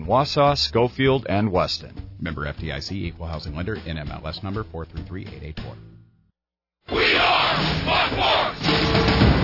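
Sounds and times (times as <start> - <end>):
speech: 0.1 - 5.9, 6.9 - 8.8
basketball fieldhouse crowd cheering: 6.9 - 9.3.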